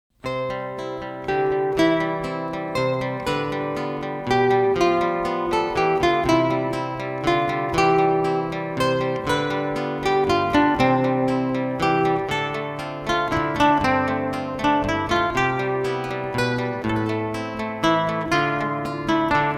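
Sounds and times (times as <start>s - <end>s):
prelude for two guitars: 0.2s - 19.5s.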